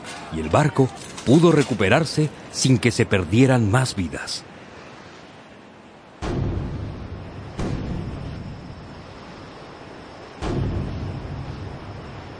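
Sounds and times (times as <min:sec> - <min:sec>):
speech: 0:00.3 - 0:04.5
cannon shots: 0:06.2 - 0:08.6, 0:10.4 - 0:11.8.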